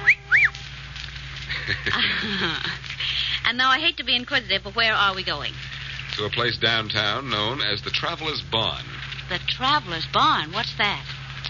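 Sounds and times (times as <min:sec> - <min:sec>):
short whistled chirps: 0:00.0 - 0:00.7
laughter: 0:01.5 - 0:03.4
speech: 0:01.7 - 0:02.8, 0:03.4 - 0:11.2.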